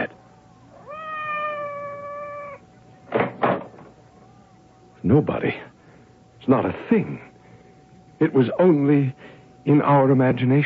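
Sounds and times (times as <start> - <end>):
cat meowing outside the door: 0.8 - 2.6
speech: 5.1 - 5.7, 6.4 - 7.3, 8.2 - 10.6.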